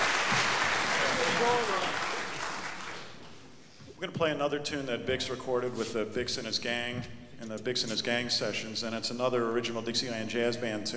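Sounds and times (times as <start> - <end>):
audience applause: 0.0 - 3.3
speech: 1.4 - 2.0, 4.0 - 10.9.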